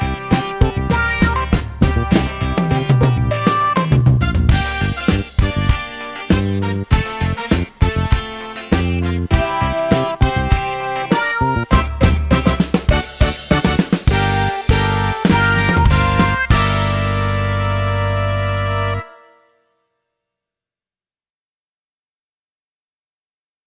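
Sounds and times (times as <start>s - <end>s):
drums: 0.0s - 19.0s.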